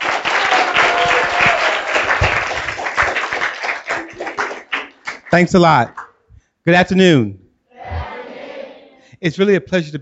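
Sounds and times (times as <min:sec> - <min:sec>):
Baltimore audience applauding two authors: 0:00.0 - 0:06.1
speech: 0:05.3 - 0:06.0, 0:06.6 - 0:07.4, 0:09.2 - 0:09.9.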